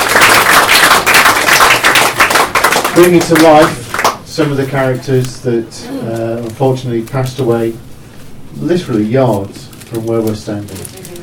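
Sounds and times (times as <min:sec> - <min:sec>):
crowd applauding: 0:00.0 - 0:04.2
speech: 0:03.0 - 0:07.9, 0:08.5 - 0:11.0.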